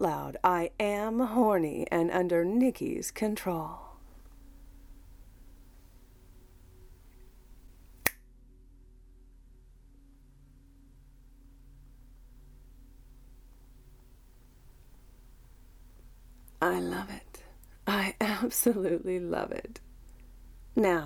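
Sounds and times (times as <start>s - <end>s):
speech: 0.0s - 3.9s, 18.4s - 19.8s, 20.8s - 21.0s
finger snap: 8.0s - 8.2s.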